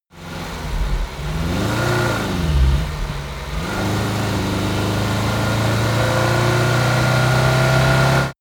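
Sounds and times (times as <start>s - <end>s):
Dacia car driving, accelerating and shifting gears: 0.2s - 8.3s.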